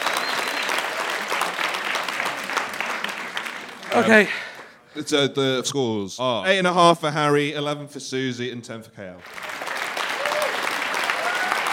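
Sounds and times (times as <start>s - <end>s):
audience applause: 0.0s - 4.7s, 9.2s - 11.7s
speech: 3.9s - 9.4s.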